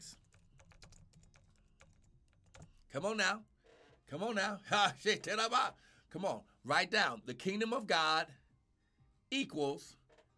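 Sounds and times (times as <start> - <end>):
faint keyboard typing: 0.2 - 2.8
speech: 2.9 - 3.5, 4.1 - 8.4, 9.3 - 10.0.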